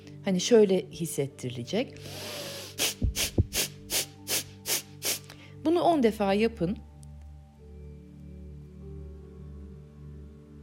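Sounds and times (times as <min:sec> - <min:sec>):
speech: 0:00.2 - 0:03.6, 0:05.7 - 0:06.9
rapid forceful breaths through the nose: 0:02.0 - 0:05.6.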